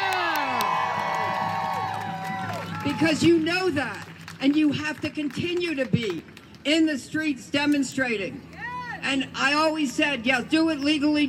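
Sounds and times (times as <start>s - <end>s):
crowd cheering at a street rally: 0.0s - 4.1s
speech: 2.8s - 11.2s.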